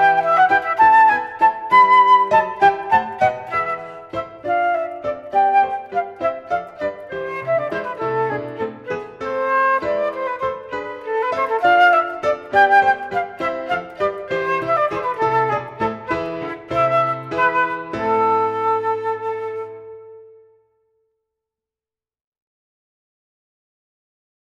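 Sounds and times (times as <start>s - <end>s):
full flute playing a passepied: 0.0s - 20.7s.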